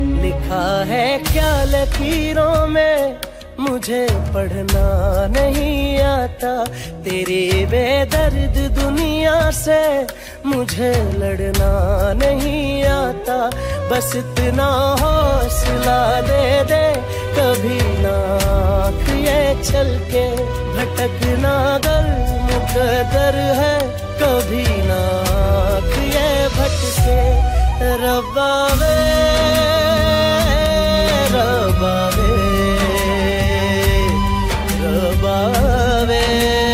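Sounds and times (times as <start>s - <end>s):
sad Hindi song: 0.0s - 36.7s.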